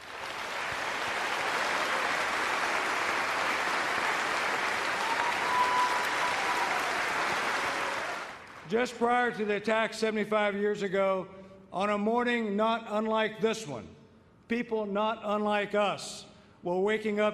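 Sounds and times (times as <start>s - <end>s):
audience round of applause: 0.0s - 8.7s
speech: 8.7s - 17.3s.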